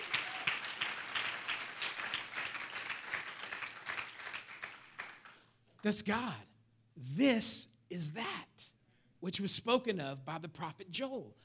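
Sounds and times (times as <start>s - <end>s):
audience applause: 0.0s - 5.3s
speech: 5.8s - 8.6s, 9.2s - 11.4s.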